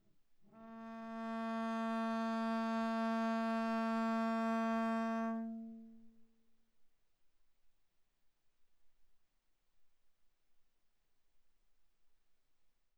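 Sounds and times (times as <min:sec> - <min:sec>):
viola bowed arco on the A string: 0:00.6 - 0:05.9.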